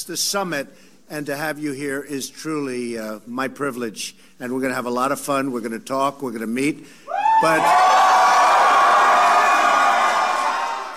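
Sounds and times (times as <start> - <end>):
speech: 0.0 - 8.1
crowd cheering at the Young Black Leadership summit in the White House: 7.1 - 10.9.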